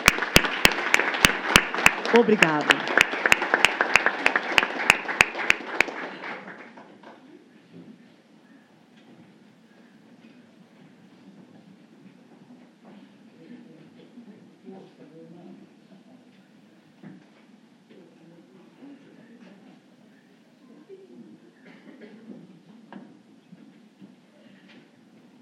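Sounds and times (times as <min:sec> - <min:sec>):
audience clapping: 0:00.0 - 0:07.0
speech: 0:02.1 - 0:02.8.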